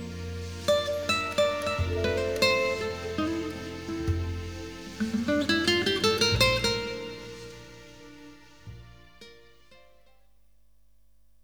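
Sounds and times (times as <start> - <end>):
drum and bass music: 0.0 - 9.0.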